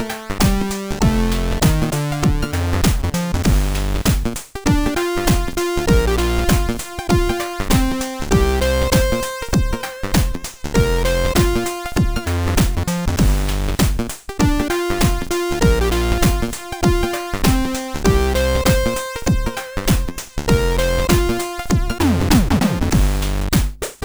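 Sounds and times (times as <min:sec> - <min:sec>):
funk music: 0:00.0 - 0:23.5.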